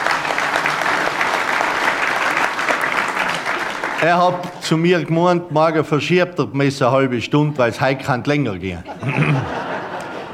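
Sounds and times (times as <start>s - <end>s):
audience applause: 0.0s - 4.6s
speech: 4.0s - 9.6s
laughter: 8.6s - 10.3s.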